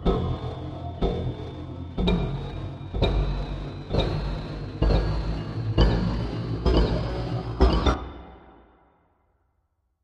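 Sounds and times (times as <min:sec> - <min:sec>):
rhythmic beat: 0:00.0 - 0:08.0
machine: 0:00.0 - 0:08.1.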